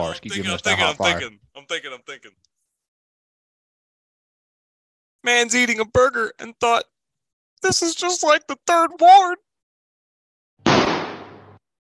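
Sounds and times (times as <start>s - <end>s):
speech: 0.0s - 2.5s, 5.2s - 6.9s, 7.6s - 9.4s
gunshot sound effects: 10.6s - 11.6s.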